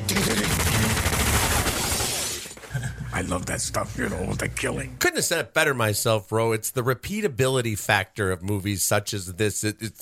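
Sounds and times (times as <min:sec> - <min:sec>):
gunfire from a shootout scene in the film Once Upon a Time in Hollywood: 0:00.0 - 0:02.5
speech: 0:03.2 - 0:10.0.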